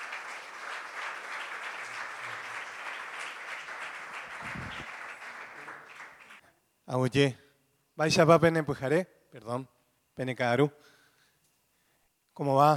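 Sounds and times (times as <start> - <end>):
audience applause: 0.0 - 6.4
speech: 6.9 - 7.4, 8.0 - 11.0, 12.4 - 12.7.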